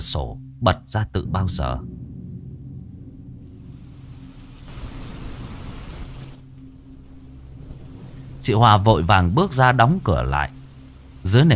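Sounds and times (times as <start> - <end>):
speech: 0.0 - 2.0, 8.4 - 10.6, 11.2 - 11.5
thunder: 1.4 - 8.5
heavy rain: 1.6 - 11.5.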